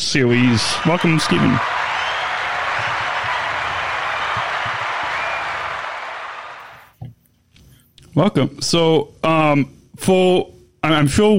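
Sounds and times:
speech: 0.1s - 1.8s, 8.2s - 11.3s
audience applause welcoming a guest: 0.3s - 6.9s.

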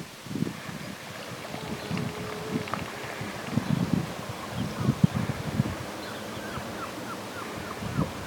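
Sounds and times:
seals singing: 1.3s - 8.2s.

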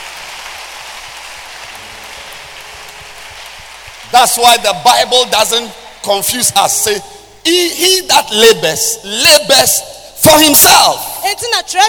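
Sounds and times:
audience clapping: 0.0s - 6.1s
speech: 4.1s - 11.8s.

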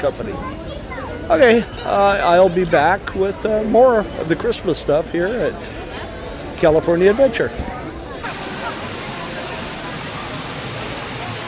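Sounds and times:
speech: 0.0s - 0.7s, 1.3s - 5.8s, 6.6s - 7.7s
waterfall rushing on the backside of Bear Mountain: 8.2s - 11.4s.

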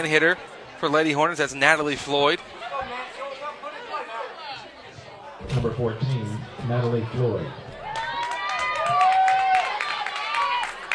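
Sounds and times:
speech: 0.0s - 3.1s, 5.5s - 7.6s
hometown crowd applause at softball game: 7.7s - 10.9s.

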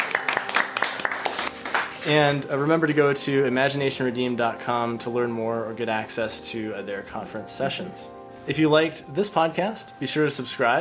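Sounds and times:
small group clapping: 0.0s - 2.1s
speech: 2.0s - 10.7s.

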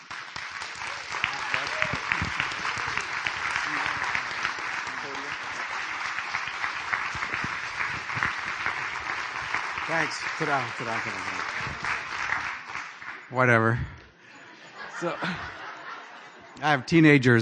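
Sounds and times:
audience applause at a Christian speaking event: 0.0s - 13.8s
laughter: 1.3s - 5.7s, 14.2s - 16.6s
speech: 9.9s - 12.0s, 13.3s - 14.0s, 15.0s - 15.6s, 16.6s - 17.4s.

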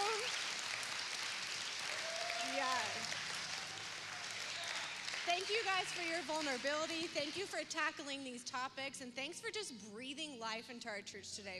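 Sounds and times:
audience applause: 0.0s - 7.6s
speech: 2.6s - 3.2s, 5.3s - 11.5s.

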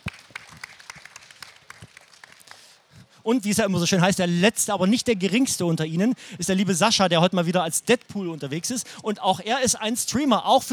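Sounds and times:
audience applause: 0.0s - 2.8s
speech: 3.2s - 10.7s.

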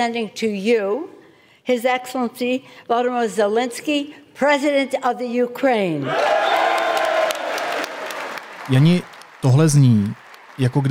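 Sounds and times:
speech: 0.0s - 6.6s, 8.7s - 10.8s
faint cheers: 6.0s - 10.8s
applause from members of Congress: 6.1s - 10.8s.

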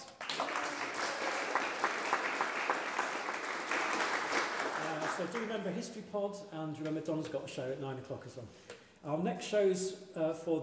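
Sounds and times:
crowd applause: 0.2s - 5.5s
speech: 5.2s - 10.6s.

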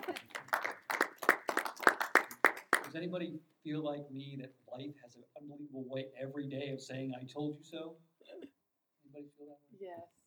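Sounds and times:
faint scattered clapping at a spoken-word poetry performance: 0.0s - 3.0s
speech: 2.9s - 8.1s, 9.2s - 10.2s.

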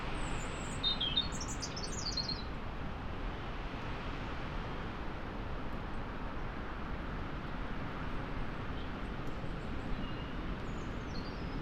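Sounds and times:
winter gales roaring through moorland forest in the Peak District: 0.0s - 11.6s.

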